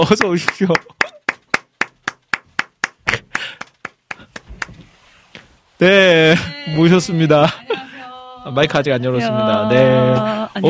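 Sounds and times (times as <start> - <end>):
speech: 0.0 - 1.1, 5.8 - 7.7, 8.4 - 10.6
clapping to welcome a guest: 0.0 - 4.8
laughter: 3.0 - 3.6, 6.2 - 8.1.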